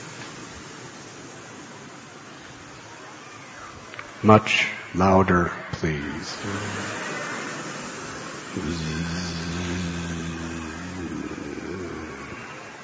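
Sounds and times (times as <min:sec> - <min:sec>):
speech: 0:04.2 - 0:07.2, 0:08.5 - 0:09.9
people imitating buzzing bumblebees: 0:06.2 - 0:12.8.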